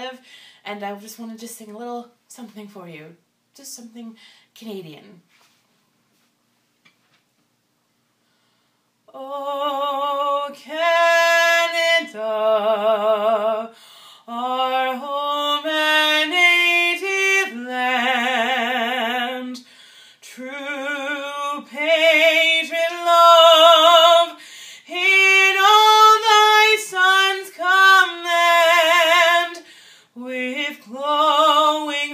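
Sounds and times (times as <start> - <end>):
woman loudly singing a national anthem: 9.1 - 32.1.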